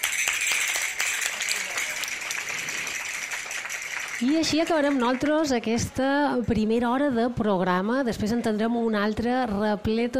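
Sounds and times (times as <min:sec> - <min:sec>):
audience applause: 0:00.0 - 0:05.6
speech: 0:04.2 - 0:10.1.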